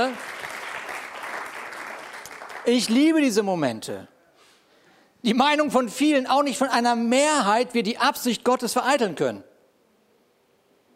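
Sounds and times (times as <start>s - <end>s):
crowd clapping: 0.0s - 3.2s
speech: 2.6s - 4.1s, 5.2s - 9.5s.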